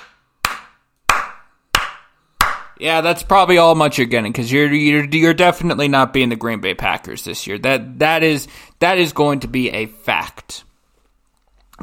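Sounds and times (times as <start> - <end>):
golf clap: 0.0 - 2.8
speech: 2.8 - 10.7.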